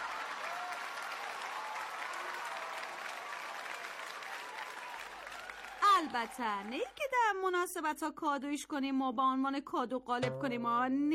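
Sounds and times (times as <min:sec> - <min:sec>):
crowd applause: 0:00.0 - 0:06.9
speech: 0:06.0 - 0:11.1.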